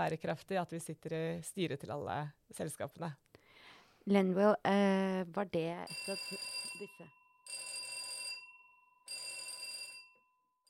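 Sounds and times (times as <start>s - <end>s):
speech: 0.0s - 3.3s, 4.0s - 7.6s
fire alarm ringing: 5.9s - 10.6s.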